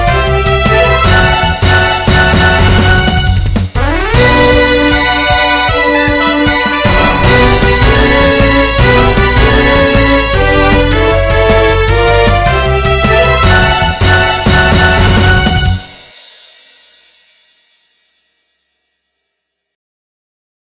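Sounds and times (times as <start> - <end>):
victory fanfare: 0.0 - 16.2.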